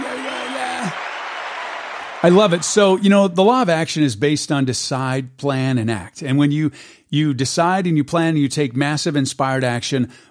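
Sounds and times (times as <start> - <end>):
audience applause: 0.0 - 2.9
speech: 2.2 - 10.2.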